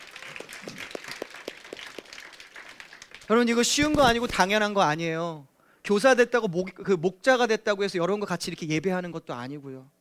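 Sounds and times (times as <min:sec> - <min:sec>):
audience applause: 0:00.0 - 0:03.5
speech: 0:03.3 - 0:09.9.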